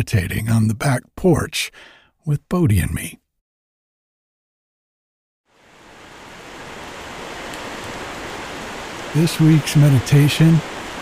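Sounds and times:
speech: 0.0 - 3.2, 9.2 - 10.9
rain on the porch: 5.5 - 10.9
white noise of the creek in winter: 5.5 - 10.9.

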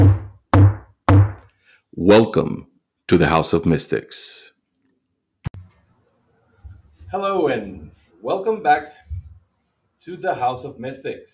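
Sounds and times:
knock on a door: 0.0 - 1.4
speech: 2.0 - 4.5, 7.1 - 9.0, 10.0 - 11.3.

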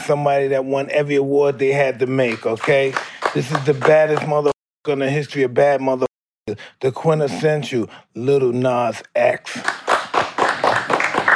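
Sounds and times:
speech: 0.1 - 9.8
audience clapping: 2.2 - 4.6, 9.5 - 11.3.

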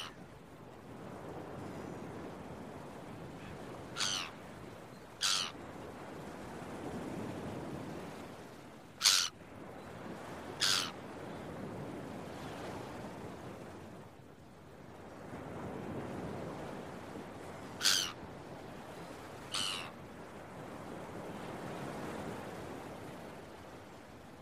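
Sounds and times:
rolling surf on beach: 0.0 - 24.4
gull calling: 4.0 - 4.4, 5.2 - 5.6, 9.0 - 9.3, 10.6 - 10.9, 17.8 - 18.2, 19.5 - 19.9.

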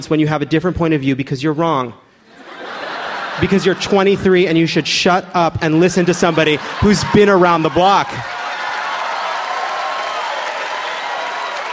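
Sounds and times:
speech: 0.0 - 2.1, 3.4 - 8.4
laughter: 2.3 - 8.3
audience applauding: 6.0 - 11.7.

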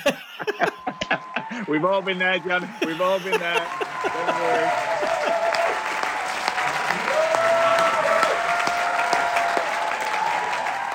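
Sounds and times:
laughter: 0.0 - 6.3
audience applause as theatre lights go down: 0.0 - 10.9
speech: 1.7 - 5.4.

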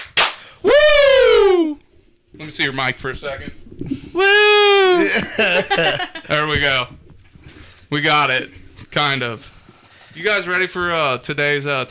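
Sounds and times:
hand claps: 0.0 - 0.6
speech: 2.4 - 7.0, 7.9 - 9.5, 10.2 - 11.8
laughter: 4.6 - 6.3.

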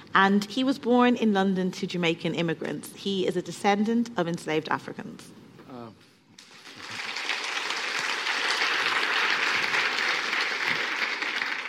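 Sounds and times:
speech: 0.2 - 5.4
audience applause: 6.4 - 11.6.

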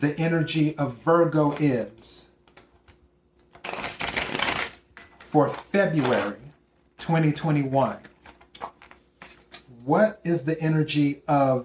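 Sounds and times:
speech: 0.0 - 2.3, 5.3 - 6.4, 7.0 - 8.1, 9.8 - 11.6
tarot cards being shuffled: 1.4 - 6.5, 7.5 - 9.7.

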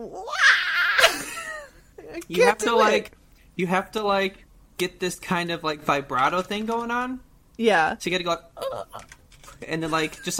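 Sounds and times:
speech: 0.0 - 0.4, 2.3 - 10.3
voice imitating a high-pitched cartoon character scream: 0.0 - 1.1.

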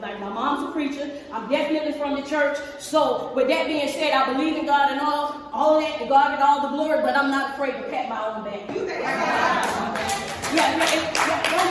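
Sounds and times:
speech: 0.2 - 11.6
laughter: 8.8 - 10.4
audience clapping: 9.4 - 11.6.

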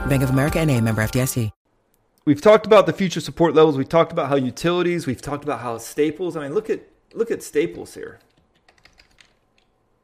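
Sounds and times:
speech: 0.1 - 1.6, 2.2 - 8.3
typing on a computer keyboard: 8.2 - 9.7.

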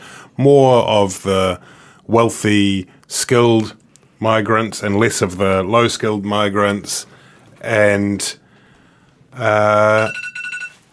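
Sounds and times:
speech: 0.4 - 8.4, 9.3 - 10.3
telephone ringing: 9.7 - 10.9.

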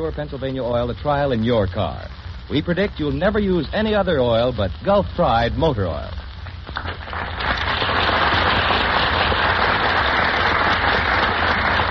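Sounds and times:
speech: 0.0 - 6.2
studio audience applause: 6.8 - 11.8.

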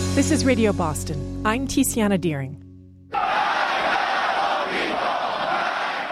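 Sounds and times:
speech: 0.1 - 2.6
crowds of Iranians chanting in the streets of Tehran: 3.1 - 6.1.

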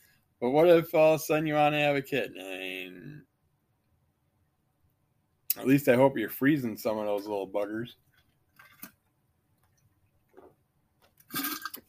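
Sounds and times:
speech: 0.4 - 3.1, 5.6 - 8.0
person drinking water: 11.3 - 11.8.

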